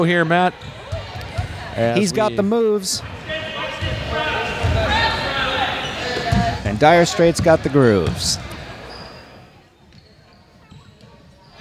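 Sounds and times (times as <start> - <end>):
speech: 0.0 - 0.8, 1.8 - 4.3, 6.8 - 8.5
din of voices and crowd noise in a gym: 0.0 - 11.5
balls bouncing in a gym: 0.5 - 1.7, 3.7 - 9.0.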